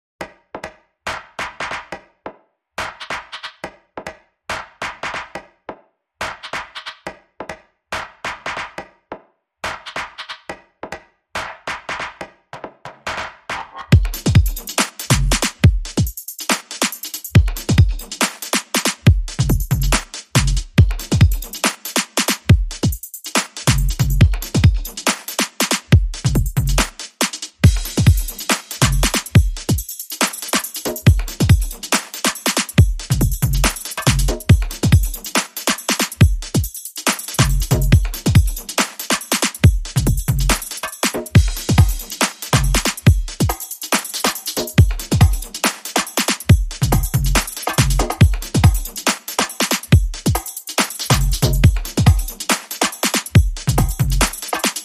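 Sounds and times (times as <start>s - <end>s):
drums: 11.4s - 54.8s.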